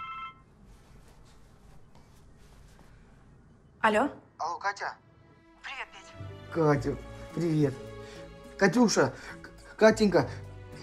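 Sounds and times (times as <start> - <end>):
electronic phone ring: 0.0 - 0.5
low noise: 0.0 - 10.8
speech: 3.8 - 5.0, 6.5 - 7.9, 8.6 - 10.4.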